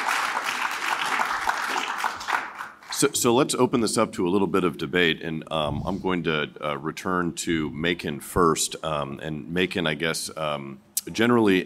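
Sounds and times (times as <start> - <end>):
audience round of applause: 0.0 - 3.1
speech: 3.0 - 11.6.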